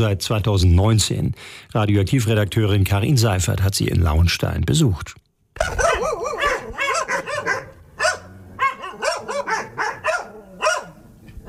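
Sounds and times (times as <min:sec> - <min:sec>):
speech: 0:00.0 - 0:06.2
dogs barking excitedly: 0:05.6 - 0:11.4.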